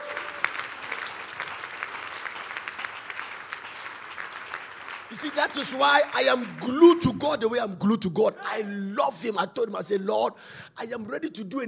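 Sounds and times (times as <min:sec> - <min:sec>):
audience clapping: 0:00.0 - 0:07.6
speech: 0:05.1 - 0:11.6.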